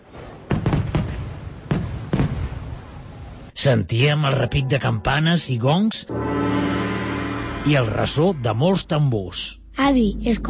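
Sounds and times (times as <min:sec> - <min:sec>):
fireworks going off in the street: 0:00.0 - 0:03.6
speech: 0:03.6 - 0:06.6, 0:07.6 - 0:10.4.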